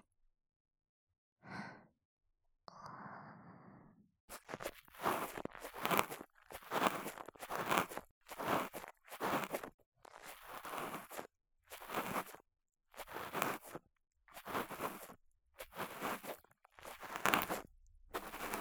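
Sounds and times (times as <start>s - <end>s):
ASMR ear cleaning with wet towel, cotton swab and bamboo ear pick: 4.3s - 18.6s.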